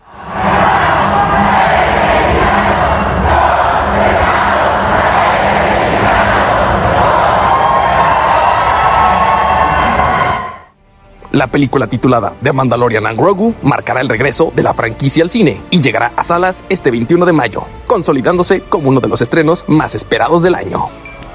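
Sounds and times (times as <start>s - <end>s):
Mexican audience ovation and cheering at a Mandalorian and Grogu event: 0.0s - 10.7s
speech: 11.4s - 21.1s.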